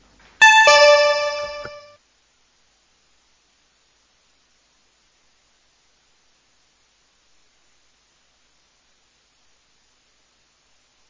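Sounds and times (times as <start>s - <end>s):
two-note electronic signal tone marking the start of voting in a council meeting: 0.4s - 2.0s.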